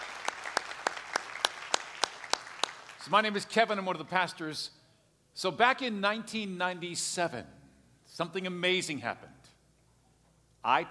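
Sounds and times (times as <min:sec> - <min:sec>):
Miami Vineyard church congregation clapping: 0:00.0 - 0:03.8
speech: 0:03.1 - 0:04.8, 0:05.4 - 0:09.3, 0:10.6 - 0:10.8.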